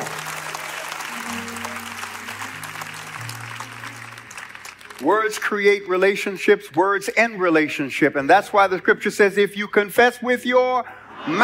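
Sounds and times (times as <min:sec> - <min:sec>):
audience hand clapping: 0:00.0 - 0:06.0
speech: 0:05.0 - 0:11.4.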